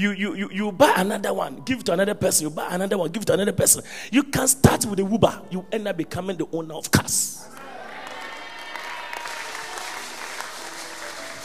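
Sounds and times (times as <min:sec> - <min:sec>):
speech: 0:00.0 - 0:07.6
crowd clapping: 0:07.4 - 0:11.4.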